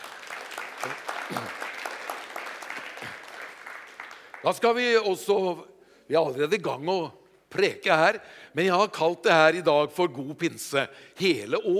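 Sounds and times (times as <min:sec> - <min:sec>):
audience applause: 0:00.0 - 0:04.5
speech: 0:00.8 - 0:01.6, 0:04.4 - 0:11.7.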